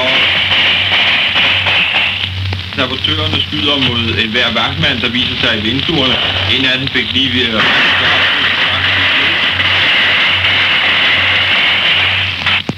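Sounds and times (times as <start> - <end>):
hand grenade explosion in a basement: 0.0 - 2.4, 7.6 - 12.6
speech: 2.9 - 8.4.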